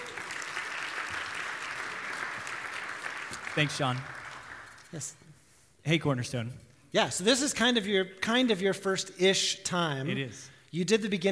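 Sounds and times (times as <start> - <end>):
church audience clapping to welcome a new associate pastor: 0.0 - 5.2
speech: 3.6 - 4.2, 4.9 - 5.2, 5.8 - 11.3.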